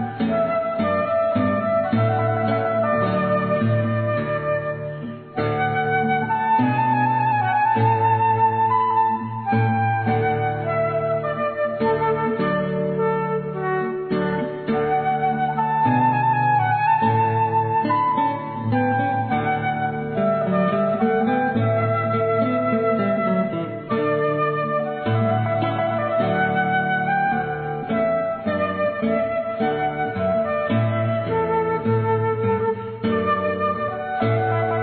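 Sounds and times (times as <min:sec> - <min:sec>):
flute: 0:00.0 - 0:34.8
guitar: 0:00.0 - 0:34.8.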